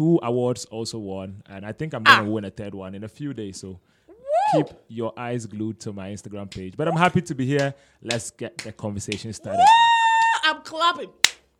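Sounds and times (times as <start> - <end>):
speech: 0.0 - 9.9, 10.6 - 11.3
person making drawn-out vocal sounds: 2.1 - 2.4, 4.1 - 4.8
hand clap: 6.5 - 6.8, 7.5 - 9.4, 10.1 - 10.4, 11.2 - 11.5.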